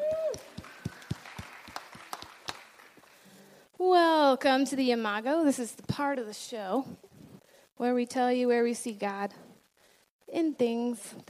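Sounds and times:
small audience sparsely clapping for a shy young girl: 0.0 - 3.2
speech: 4.3 - 7.0, 7.8 - 9.5, 10.3 - 11.2.

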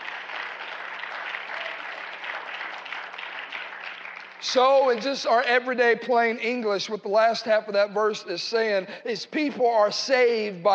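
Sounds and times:
crowd clapping hands: 0.0 - 5.7
speech: 4.4 - 10.7.

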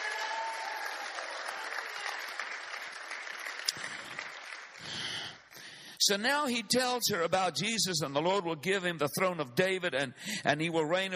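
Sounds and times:
audience clapping and shouting: 0.0 - 5.5
speech: 6.1 - 11.1.

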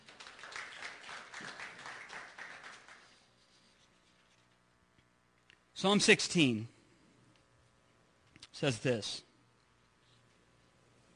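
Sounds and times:
audience applause: 0.0 - 3.2
speech: 5.8 - 6.8, 8.6 - 9.3.

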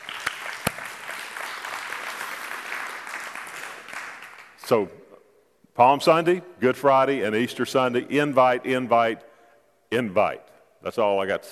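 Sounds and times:
audience clapping: 0.0 - 4.6
speech: 4.7 - 5.0, 5.8 - 9.3, 9.9 - 11.4.

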